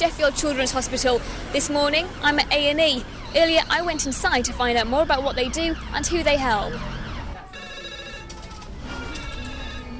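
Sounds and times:
speech: 0.0s - 7.0s
telephone ringing in a hospital emergency department: 7.5s - 9.9s.

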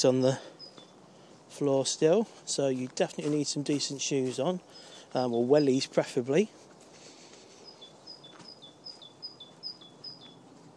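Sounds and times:
speech: 0.0s - 0.5s, 1.6s - 6.6s
bird singing a high two-note phrase: 0.0s - 1.0s, 4.3s - 6.3s, 7.6s - 10.5s
soft outdoor hiss: 0.0s - 10.7s.

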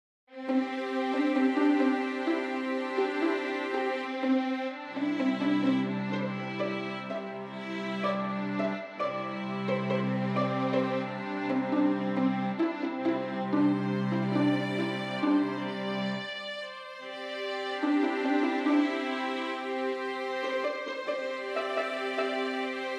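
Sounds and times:
pentatonic music piece: 0.3s - 22.9s.

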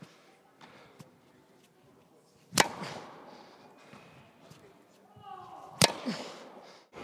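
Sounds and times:
tennis practice shots at David Lloyd Tennis Centre: 2.5s - 3.3s, 5.6s - 6.6s.

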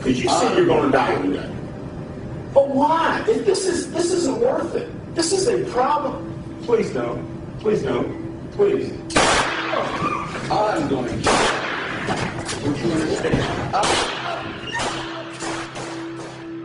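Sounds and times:
speech: 0.1s - 1.6s, 2.5s - 11.5s, 12.1s - 14.8s
handgun gunfire during a board meeting: 9.1s - 9.9s, 11.2s - 12.1s, 13.8s - 16.6s.

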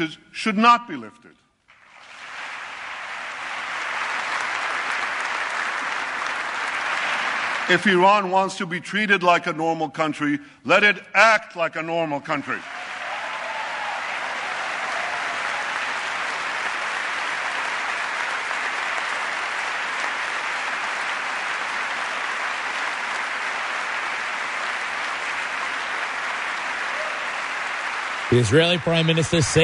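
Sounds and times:
speech: 0.0s - 1.4s, 7.7s - 12.8s, 28.3s - 29.6s
audience applause during a speech: 1.7s - 8.3s, 12.5s - 29.6s.

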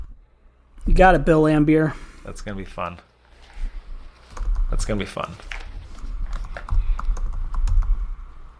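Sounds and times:
speech: 0.9s - 3.1s, 4.7s - 5.5s
typing on a computer keyboard: 4.3s - 4.7s, 5.9s - 7.9s.

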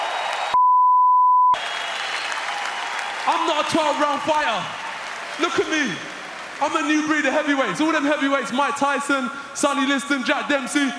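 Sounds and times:
audience applause: 0.0s - 0.6s, 1.6s - 8.6s
speech: 3.3s - 4.8s, 5.4s - 10.9s.

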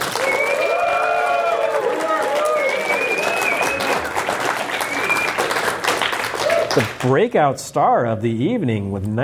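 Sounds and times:
audience applause and cheering at a live event: 0.0s - 7.3s
whoops and whistles: 0.1s - 1.5s, 2.3s - 4.1s, 4.7s - 5.5s
speech: 6.8s - 9.2s.

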